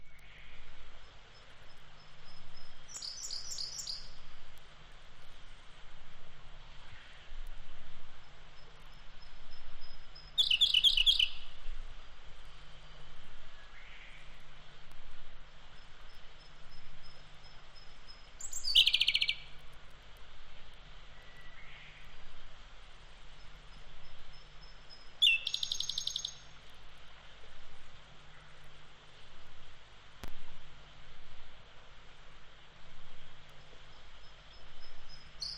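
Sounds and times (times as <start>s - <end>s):
wild birds singing on Mount Takao: 0.0s - 4.3s, 8.2s - 11.6s, 15.5s - 19.6s, 23.3s - 26.5s, 33.5s - 35.5s.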